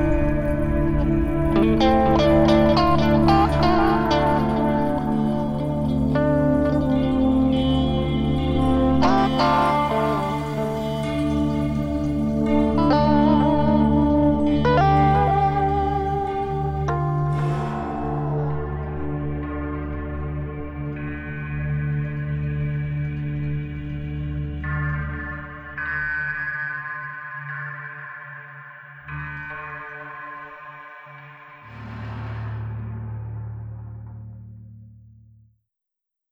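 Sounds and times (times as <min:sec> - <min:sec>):
strange guitar playing: 0:00.0 - 0:26.1.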